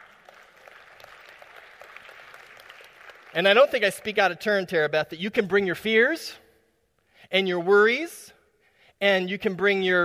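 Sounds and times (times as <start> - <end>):
audience clapping: 0.0 - 4.4
speech: 3.4 - 6.4, 7.3 - 8.4, 9.0 - 10.0.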